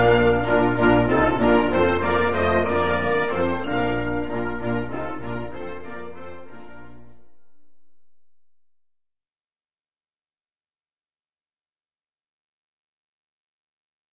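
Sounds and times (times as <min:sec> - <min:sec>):
band playing: 0:00.0 - 0:07.2.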